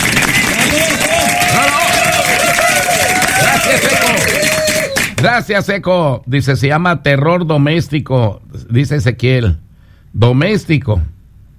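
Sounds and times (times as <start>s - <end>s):
applause: 0.0s - 5.3s
speech: 5.2s - 11.1s.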